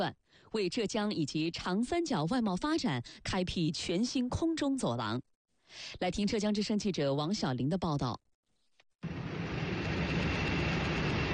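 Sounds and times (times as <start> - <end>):
speech: 0.0 - 8.2
YTO Airlines Jiaxing cargo plane engines roaring at takeoff: 9.0 - 11.3.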